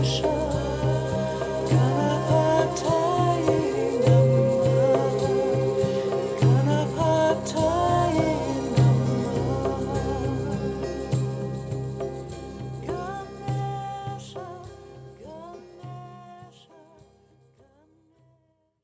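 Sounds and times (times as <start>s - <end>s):
chakra healing chants: 0.0s - 14.5s.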